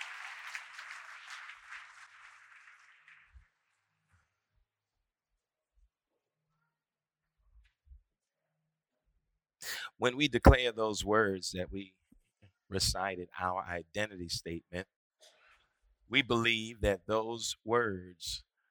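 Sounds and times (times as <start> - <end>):
audience clapping hands in praise: 0.0 - 3.6
speech: 10.0 - 12.0, 12.7 - 15.0, 16.1 - 18.5.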